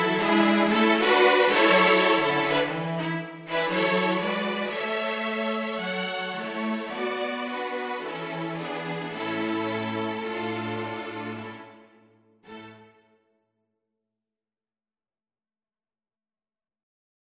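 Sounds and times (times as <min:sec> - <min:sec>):
string quartet playing: 0:00.0 - 0:13.0.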